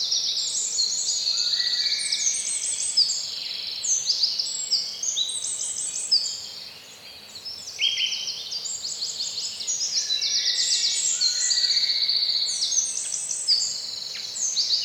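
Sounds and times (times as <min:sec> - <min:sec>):
birds in a spring morning forest in Poland: 0:00.0 - 0:14.8.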